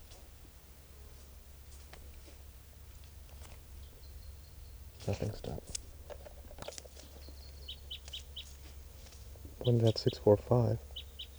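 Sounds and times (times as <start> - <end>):
speech: 5.0 - 5.9, 9.6 - 10.9
wild bird calling: 5.0 - 11.3.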